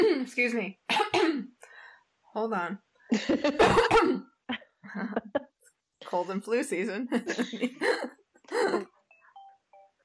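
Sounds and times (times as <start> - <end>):
speech: 0.3 - 1.6, 2.3 - 5.4, 6.0 - 8.9
mobile phone ringing with a faint electronic melody: 9.0 - 10.0.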